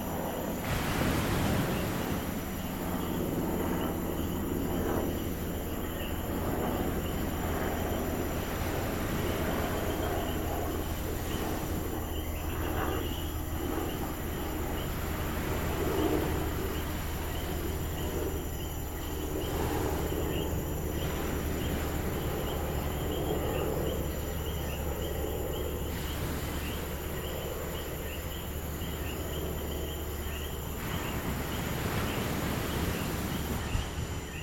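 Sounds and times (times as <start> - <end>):
crickets trilling at night in Rincón Puerto Rico: 0.0 - 34.4
ocean surf at night in Rincón Puerto Rico: 0.3 - 4.4, 6.7 - 12.4, 13.9 - 18.5, 19.5 - 23.3, 25.8 - 27.7, 30.7 - 34.4.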